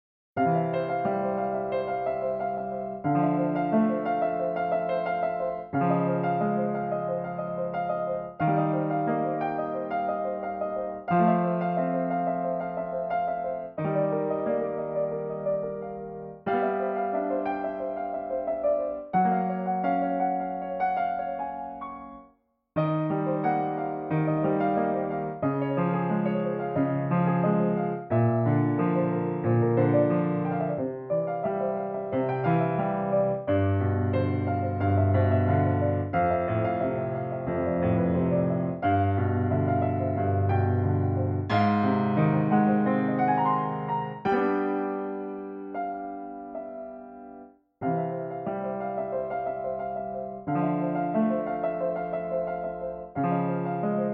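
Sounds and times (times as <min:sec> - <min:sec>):
piano: 0:00.4 - 0:54.1.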